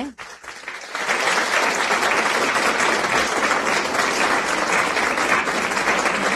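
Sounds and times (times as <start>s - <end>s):
audience applause: 0.0s - 6.3s.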